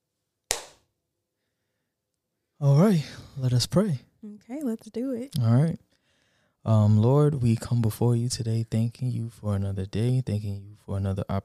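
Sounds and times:
hand clap: 0.5s - 0.9s
speech: 2.6s - 5.9s, 6.6s - 11.4s.

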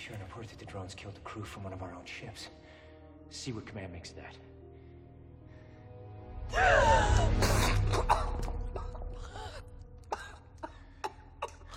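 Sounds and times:
speech: 0.0s - 4.6s, 6.5s - 8.1s
person coughing up breathing fluid: 7.4s - 9.1s, 10.1s - 11.7s.

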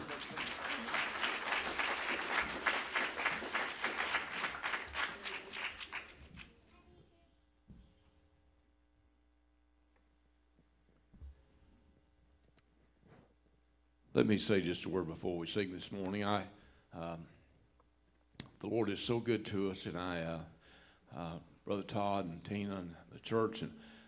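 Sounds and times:
church congregation applauding a gospel singing group: 0.0s - 6.5s
low electrical hum: 0.0s - 24.0s
speech: 14.2s - 17.4s, 18.6s - 23.9s.

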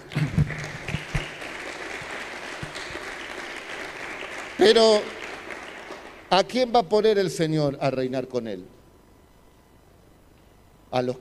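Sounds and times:
audience applauding: 0.0s - 6.4s
speech: 4.6s - 5.2s, 6.3s - 8.8s, 10.9s - 11.1s.

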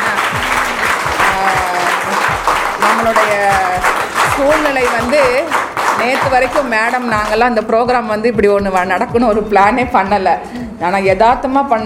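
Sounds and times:
crowd clapping: 0.0s - 7.6s
speech: 3.0s - 11.8s.

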